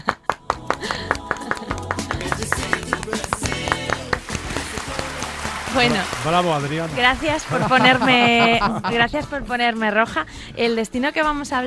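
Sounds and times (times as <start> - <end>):
applause sound effect: 0.0 - 8.5
speech: 5.8 - 11.6
laughter: 7.2 - 9.3.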